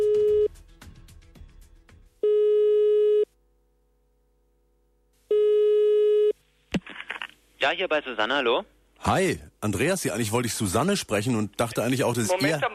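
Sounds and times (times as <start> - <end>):
telephone ringing tone while calling out: 2.2 - 3.3, 5.3 - 6.4
speech: 7.6 - 12.7.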